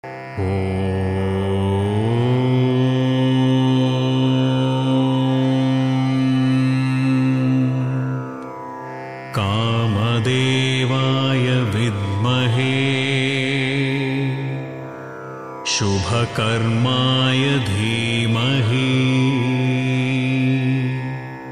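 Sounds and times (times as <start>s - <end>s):
mantra chanting: 0.3s - 8.2s, 9.3s - 14.9s, 15.6s - 21.5s.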